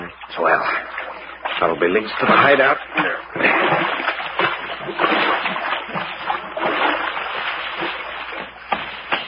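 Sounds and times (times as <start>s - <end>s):
speech: 0.3s - 1.0s, 1.6s - 4.1s
footsteps splashing through muddy creek water: 0.4s - 9.2s.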